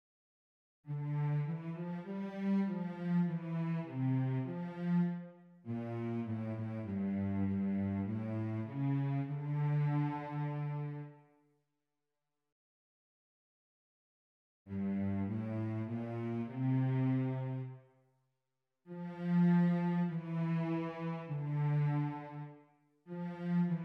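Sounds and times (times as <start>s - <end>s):
cello: 0.9s - 11.4s, 14.7s - 17.9s, 18.9s - 23.8s.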